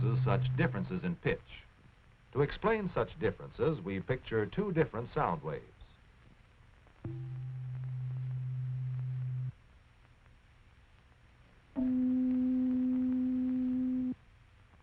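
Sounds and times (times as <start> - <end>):
speech: 0.0 - 1.7, 2.3 - 5.8, 7.0 - 7.5
tuning fork tone C below middle C: 7.0 - 9.5, 11.8 - 14.2.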